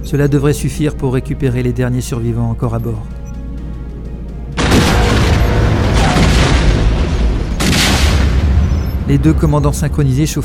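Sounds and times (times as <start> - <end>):
speech: 0.0 - 3.2, 9.1 - 10.4
spaceship explosion: 4.6 - 9.4.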